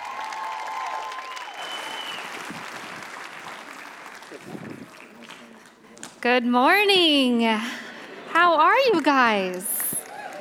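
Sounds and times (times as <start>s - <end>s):
church congregation applauding a speaker: 0.0s - 6.1s, 8.9s - 10.4s
speech: 6.2s - 7.8s, 8.4s - 9.7s.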